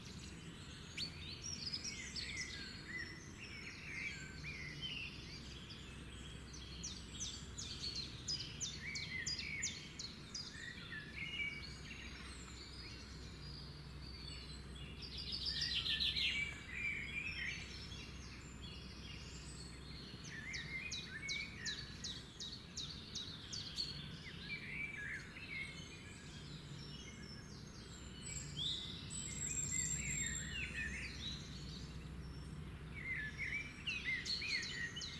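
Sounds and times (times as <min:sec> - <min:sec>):
morning birds singing: 0:00.0 - 0:35.1.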